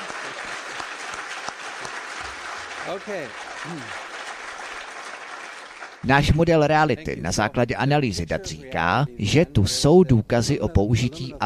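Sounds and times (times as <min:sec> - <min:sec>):
applause: 0:00.0 - 0:06.3
speech: 0:02.8 - 0:04.0, 0:06.0 - 0:11.4.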